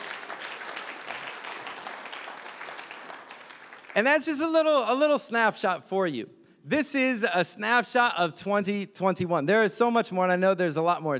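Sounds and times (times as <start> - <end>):
audience clapping: 0.0 - 4.9
speech: 4.0 - 11.1.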